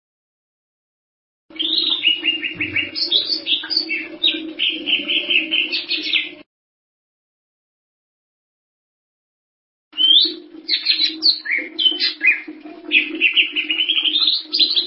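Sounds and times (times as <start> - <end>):
bird song twittering: 1.5 - 6.4, 10.0 - 14.8.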